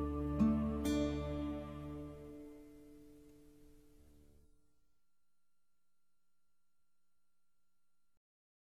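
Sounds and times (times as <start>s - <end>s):
soft flute epic start: 0.0s - 2.6s.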